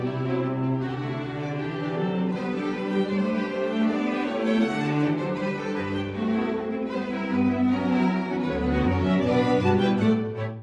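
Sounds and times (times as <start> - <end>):
strings playing an air and gavotte: 0.0 - 10.6.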